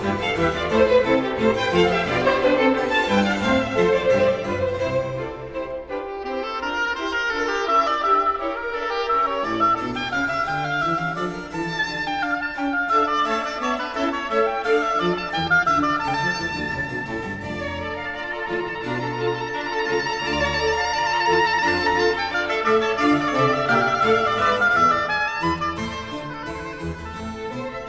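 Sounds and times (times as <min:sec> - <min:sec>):
oboe concerto in F major: 0:00.0 - 0:27.8.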